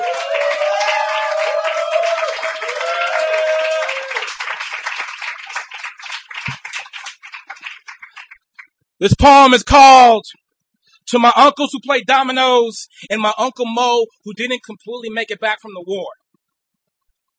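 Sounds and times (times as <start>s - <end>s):
audience applauding a poet at a reading: 0.0s - 8.4s
speech: 9.0s - 10.4s, 11.1s - 16.2s.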